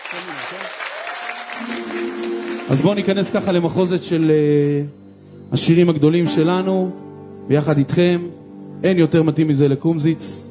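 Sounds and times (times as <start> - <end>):
audience applause for musicians on stage: 0.0 - 3.5
speech: 0.1 - 0.8, 1.6 - 10.4.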